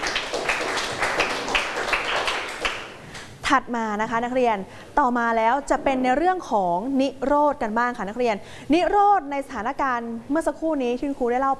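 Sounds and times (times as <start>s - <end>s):
group of students clapping: 0.0s - 3.3s
speech: 3.5s - 11.5s.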